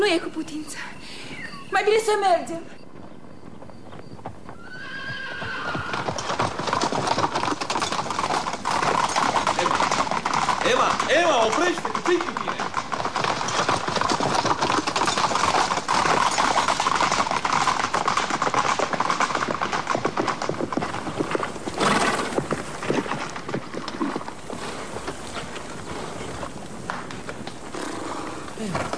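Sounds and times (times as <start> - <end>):
speech: 0.1 - 2.8, 11.0 - 12.6
horse hooves clopping: 1.5 - 28.9
horse whinnying: 4.5 - 19.5, 27.7 - 28.9.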